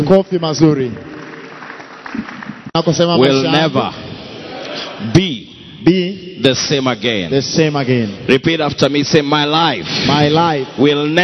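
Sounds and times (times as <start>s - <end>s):
speech: 0.0s - 1.1s, 2.2s - 4.0s, 4.8s - 11.2s
church congregation clapping: 0.6s - 3.8s.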